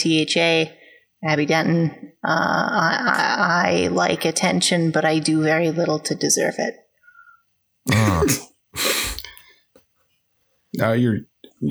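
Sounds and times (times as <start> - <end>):
speech: 0.0 - 6.8, 7.8 - 8.9, 10.7 - 11.7
sneeze: 7.9 - 9.4.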